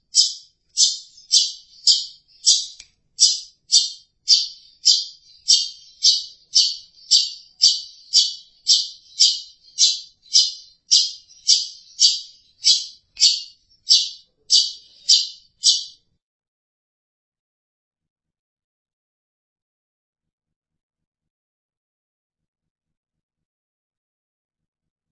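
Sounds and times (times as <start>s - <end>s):
Long-tailed Shrike calling harshly: 0.0s - 16.0s.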